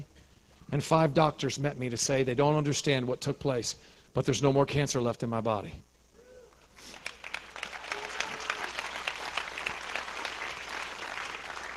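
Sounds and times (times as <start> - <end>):
speech: 0.7 - 5.9
audience clapping: 6.8 - 11.7.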